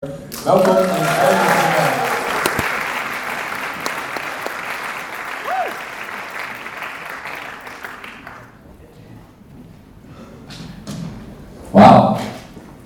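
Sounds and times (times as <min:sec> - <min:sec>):
speech: 0:00.0 - 0:01.4
crowd applause: 0:00.9 - 0:08.4.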